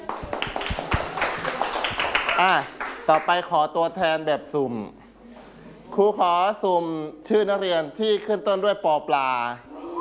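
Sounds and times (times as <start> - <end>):
classroom students clapping for a classmate: 0.0 - 3.4
speech: 2.4 - 5.0, 5.9 - 9.7.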